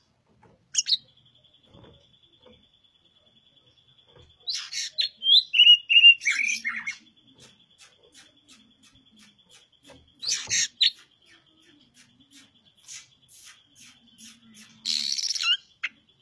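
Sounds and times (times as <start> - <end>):
Oriental magpie-robin singing energetically: 0.7 - 16.2.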